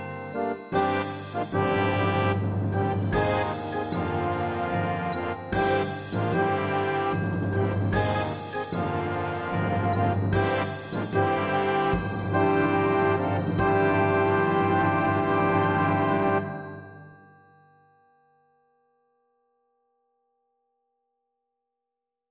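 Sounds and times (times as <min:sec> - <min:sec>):
tekiah fanfare: 0:00.0 - 0:16.7.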